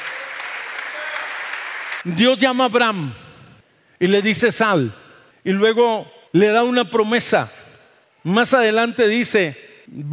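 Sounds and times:
loud audience applause: 0.0s - 2.1s
speech: 2.0s - 3.2s, 4.0s - 7.6s, 8.2s - 10.1s.

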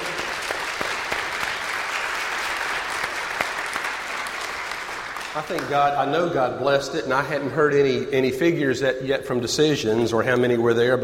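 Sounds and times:
audience applauding: 0.0s - 6.3s
speech: 5.4s - 11.0s.

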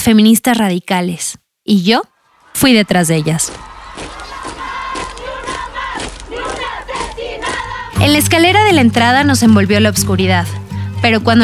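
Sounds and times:
speech: 0.0s - 4.1s, 8.0s - 11.4s
group of women shouting angrily: 2.2s - 8.0s.

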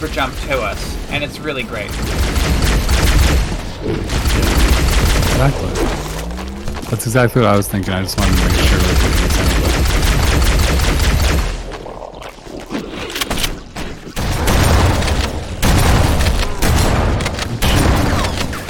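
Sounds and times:
speech: 0.0s - 6.1s, 6.9s - 9.0s
video game gunfire bursts echoing down a hallway: 0.0s - 6.8s, 8.2s - 11.7s, 14.2s - 18.6s.

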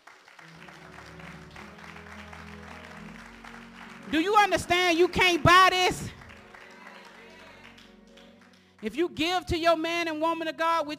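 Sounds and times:
audience clapping: 0.0s - 9.0s
speech: 4.1s - 6.2s, 8.8s - 10.9s.

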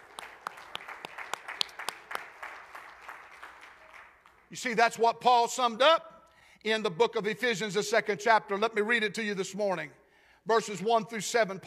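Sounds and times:
group of people clapping their hands: 0.0s - 4.8s
speech: 4.5s - 11.6s.

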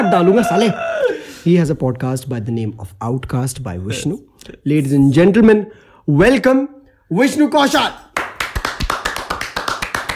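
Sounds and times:
speech: 0.0s - 8.0s
clapping: 8.2s - 10.1s.

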